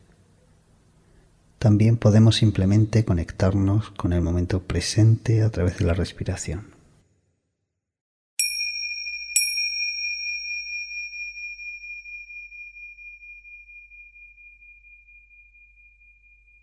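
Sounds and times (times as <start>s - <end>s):
speech: 1.6s - 6.8s
finger cymbals (crotales) ringing: 8.4s - 16.6s.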